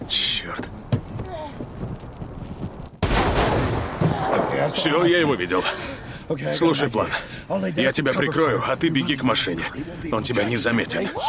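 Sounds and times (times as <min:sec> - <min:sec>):
speech: 0:00.1 - 0:00.6, 0:04.7 - 0:11.2
sharp gunshot crack in a film scene: 0:03.0 - 0:05.1
gunfire barrage in a film scene: 0:03.0 - 0:05.3.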